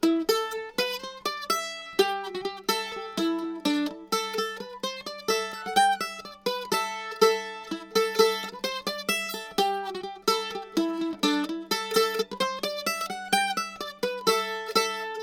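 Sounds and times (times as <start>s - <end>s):
mandolin: 0.0s - 15.2s.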